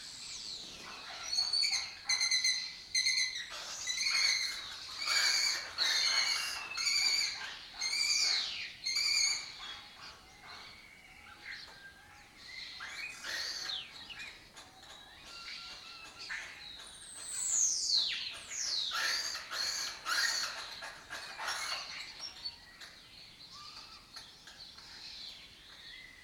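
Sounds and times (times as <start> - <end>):
lesser kestrel chattering calls: 0.4 - 10.8, 12.7 - 22.9.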